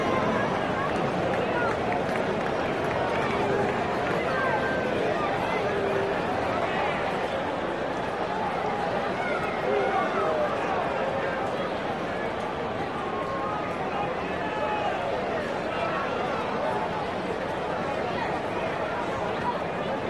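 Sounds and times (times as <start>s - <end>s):
idle crowd in a sports arena: 0.0s - 20.0s.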